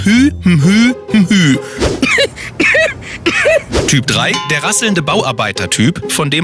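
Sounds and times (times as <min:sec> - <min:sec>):
speech: 0:00.0 - 0:06.4
woman stifling a cough with closed mouth: 0:02.0 - 0:03.7.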